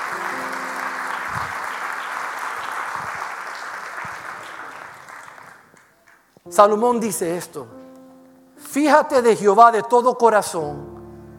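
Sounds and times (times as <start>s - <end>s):
audience applause: 0.0s - 6.4s
speech: 6.6s - 7.8s, 8.7s - 10.9s.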